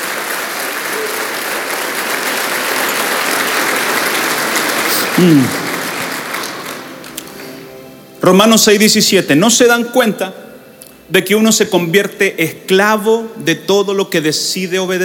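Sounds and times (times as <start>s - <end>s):
loud audience applause: 0.0s - 7.7s
speech: 5.2s - 5.6s, 8.2s - 10.4s, 11.1s - 15.0s.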